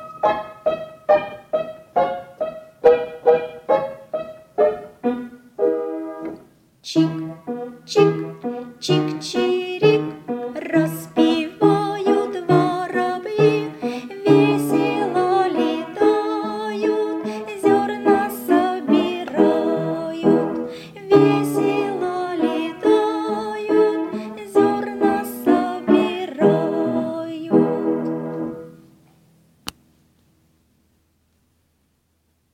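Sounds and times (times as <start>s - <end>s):
piano: 0.0s - 29.5s
voice: 6.8s - 7.3s, 7.9s - 28.0s.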